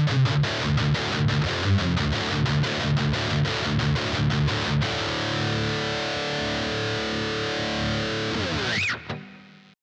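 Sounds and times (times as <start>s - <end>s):
guitar through Metal Zone distortion pedal: 0.0s - 9.8s.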